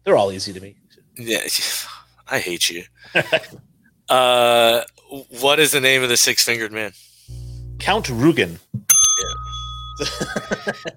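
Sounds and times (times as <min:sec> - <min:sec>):
speech: 0:00.0 - 0:08.6, 0:10.0 - 0:10.9
bell rung for correct quiz answer: 0:08.9 - 0:10.9
chuckling laughter: 0:10.0 - 0:10.9.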